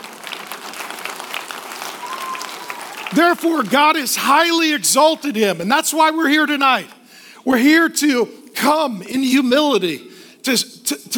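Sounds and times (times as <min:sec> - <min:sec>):
audience clapping: 0:00.0 - 0:04.6
speech: 0:03.1 - 0:11.1.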